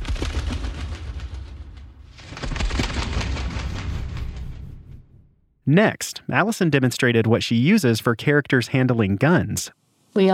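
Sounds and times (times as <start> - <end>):
foley moth wings made with toilet paper: 0.0 - 4.6
speech: 5.7 - 10.3.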